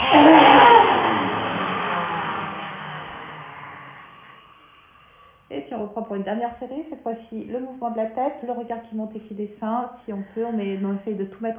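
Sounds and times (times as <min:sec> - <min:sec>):
roaring exhale in yoga lion breath: 0:00.0 - 0:05.5
speech: 0:05.8 - 0:11.5.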